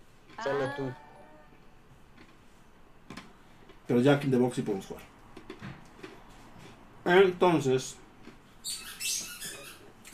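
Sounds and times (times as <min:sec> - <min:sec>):
speech: 0:00.4 - 0:01.0, 0:03.9 - 0:05.1, 0:07.0 - 0:08.0
dogs playing with squeaky toys: 0:08.6 - 0:10.1.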